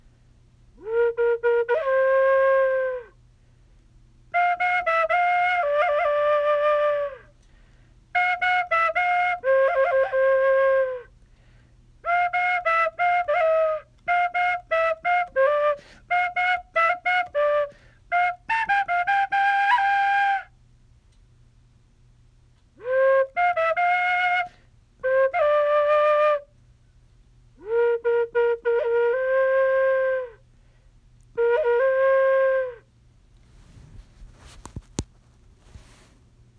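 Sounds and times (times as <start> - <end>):
bamboo flute: 0.8 - 3.2, 4.3 - 7.4, 8.1 - 11.2, 12.0 - 20.6, 22.8 - 26.6, 27.6 - 30.5, 31.3 - 32.9.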